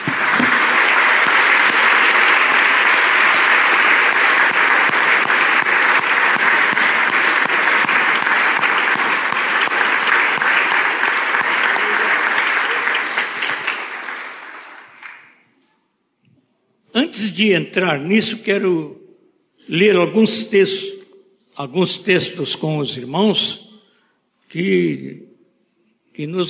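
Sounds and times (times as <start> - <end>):
audience applause: 0.0 - 15.4
speech: 17.4 - 19.0, 19.7 - 20.9, 21.6 - 23.6, 24.5 - 25.3, 26.2 - 26.4.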